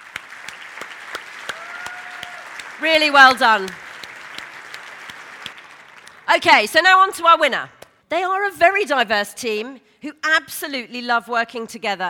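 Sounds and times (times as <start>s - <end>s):
audience applause: 0.0s - 6.4s
speech: 2.8s - 3.8s, 6.3s - 12.0s.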